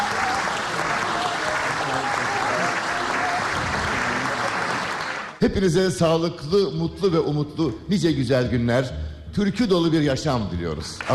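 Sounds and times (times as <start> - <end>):
audience applauding the choir: 0.0 - 5.4
speech: 5.4 - 11.1.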